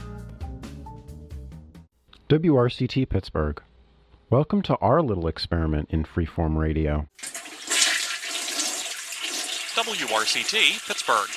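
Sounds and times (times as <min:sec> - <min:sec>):
speech: 0:02.3 - 0:03.7, 0:04.3 - 0:07.2, 0:09.8 - 0:11.3
toilet flushing: 0:07.2 - 0:11.3.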